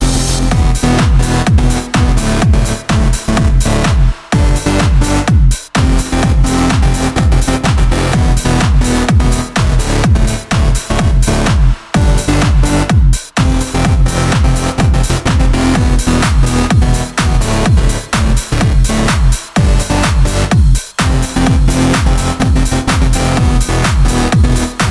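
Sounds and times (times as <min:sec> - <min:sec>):
electro music: 0:00.0 - 0:24.8.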